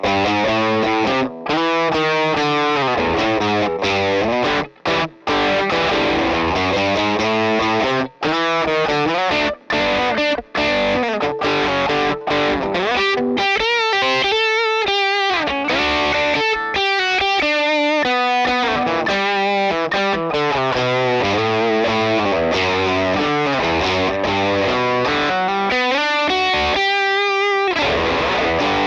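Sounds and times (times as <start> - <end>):
saturated electric guitar riff through Analog Man Beano Boost into Vox AC15 amp: 0.0 - 28.8.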